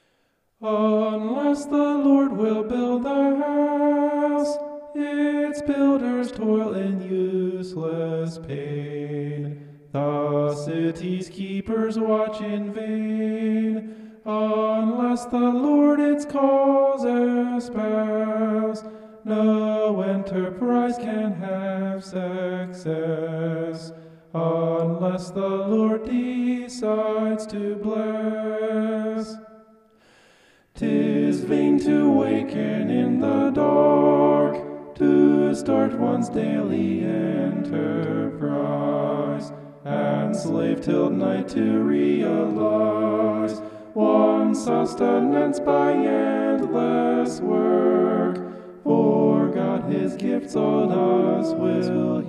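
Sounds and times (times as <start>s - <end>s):
homophonic vocals: 0.6s - 29.7s, 30.7s - 52.2s.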